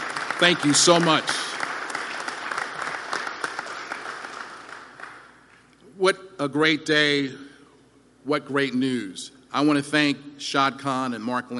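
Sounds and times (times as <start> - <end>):
audience applause: 0.0 - 5.4
speech: 0.4 - 1.5, 6.0 - 7.5, 8.2 - 11.5.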